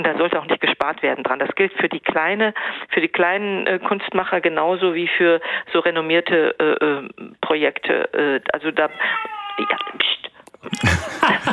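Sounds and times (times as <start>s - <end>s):
speech: 0.0s - 11.5s
small child whining: 8.9s - 10.0s
laughter: 10.7s - 11.5s.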